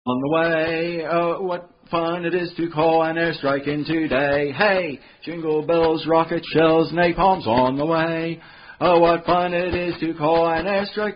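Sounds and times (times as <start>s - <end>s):
Christmas song: 0.1s - 11.1s.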